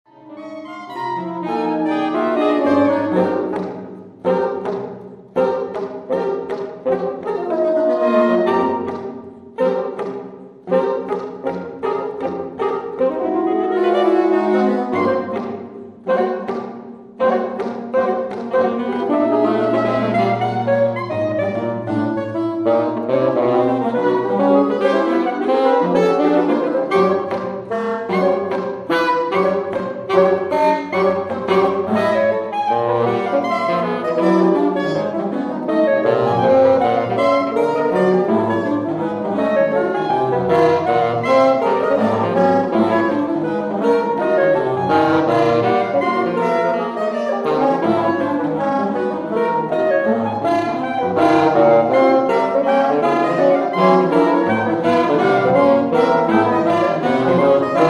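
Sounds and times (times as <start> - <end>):
saxophone quartet: 0.2 - 57.8.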